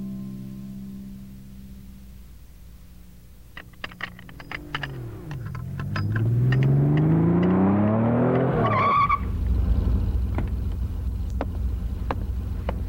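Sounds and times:
car engine running strangely: 0:03.6 - 0:12.8.

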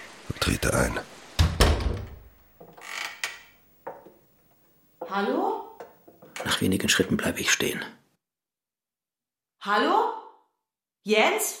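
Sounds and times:
speech: 0:00.4 - 0:01.1, 0:05.1 - 0:05.6, 0:06.4 - 0:08.0, 0:09.6 - 0:10.2, 0:11.0 - 0:11.5
door latch knock of a small hut sunk into the earth: 0:01.4 - 0:02.3
door of a small hut sunk into the earth creaking open: 0:01.4 - 0:04.2, 0:05.0 - 0:07.3.

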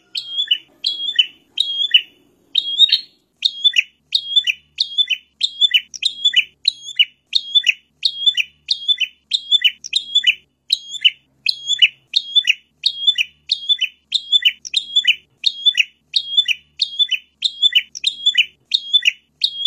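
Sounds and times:
bird chirping and whistling: 0:00.0 - 0:19.6.

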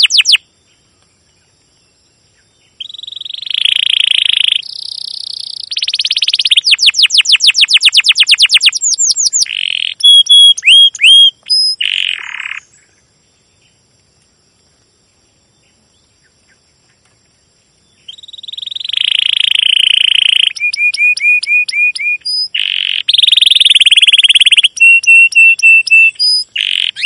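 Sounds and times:
domestic canary singing chirps, rolling trill and buzzy rattling phrases: 0:00.0 - 0:00.4, 0:02.4 - 0:13.1, 0:17.9 - 0:27.0.

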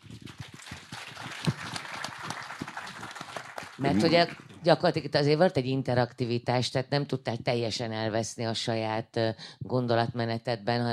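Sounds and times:
audience applause: 0:00.0 - 0:04.7
speech: 0:03.8 - 0:10.9.

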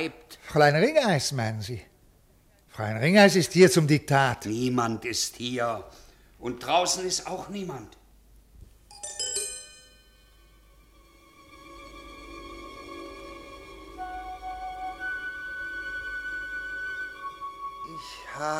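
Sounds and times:
speech: 0:00.0 - 0:01.9, 0:02.8 - 0:08.0, 0:18.4 - 0:18.5
typewriter bell ringing: 0:08.9 - 0:10.3.

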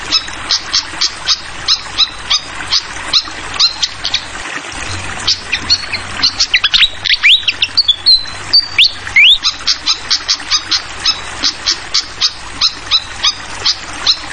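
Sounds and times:
running water bubbling: 0:00.0 - 0:14.3
fantail whistling song: 0:04.8 - 0:10.0.

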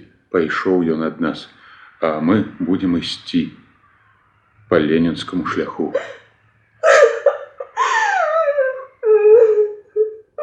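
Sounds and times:
speech: 0:00.3 - 0:03.6, 0:04.7 - 0:06.2
laughter: 0:05.7 - 0:08.8
girl crying: 0:06.8 - 0:10.4.

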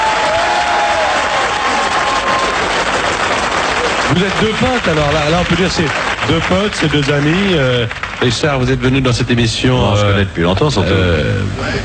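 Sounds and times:
television show audience applause welcoming a guest: 0:00.0 - 0:09.0
speech: 0:04.2 - 0:11.8.

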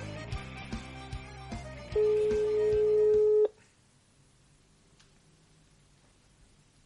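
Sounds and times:
steady electronic phone tone: 0:01.9 - 0:03.5.

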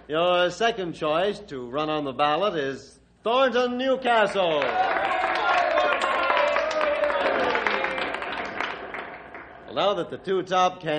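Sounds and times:
speech: 0:00.1 - 0:05.3, 0:09.8 - 0:10.9
audience applauding: 0:04.4 - 0:09.8.

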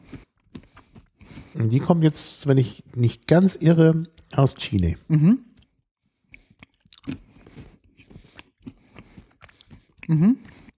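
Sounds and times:
nuts being chewed: 0:00.0 - 0:01.8, 0:05.5 - 0:10.7
speech: 0:01.6 - 0:05.5, 0:10.1 - 0:10.5.

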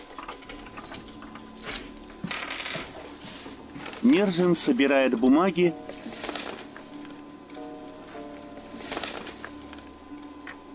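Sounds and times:
keys being picked up, jangling: 0:00.0 - 0:02.0
speech: 0:04.0 - 0:05.9.

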